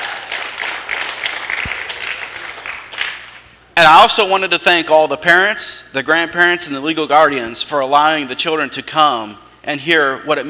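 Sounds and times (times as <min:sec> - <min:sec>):
audience applause: 0:00.0 - 0:03.4
speech: 0:03.8 - 0:10.4.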